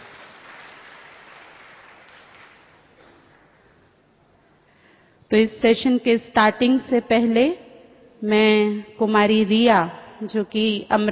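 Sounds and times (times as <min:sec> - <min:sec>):
crowd clapping in welcome: 0:00.0 - 0:03.8
speech: 0:05.3 - 0:07.6, 0:08.2 - 0:11.0.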